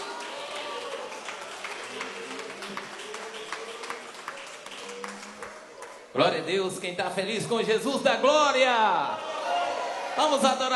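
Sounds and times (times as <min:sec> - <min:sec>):
faint murmuring voices: 0:00.0 - 0:05.9
audience applauding: 0:00.0 - 0:06.1
speech: 0:06.2 - 0:09.2, 0:10.2 - 0:10.7.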